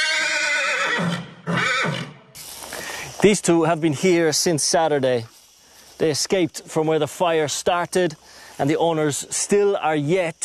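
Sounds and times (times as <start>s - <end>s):
horse neighing: 0.0s - 2.2s
speech: 3.2s - 5.4s, 6.0s - 10.4s.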